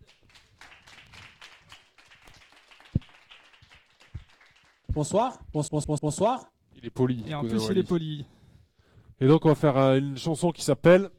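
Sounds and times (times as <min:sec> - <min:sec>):
crowd applauding: 0:00.0 - 0:04.9
speech: 0:05.0 - 0:08.4, 0:09.2 - 0:11.1.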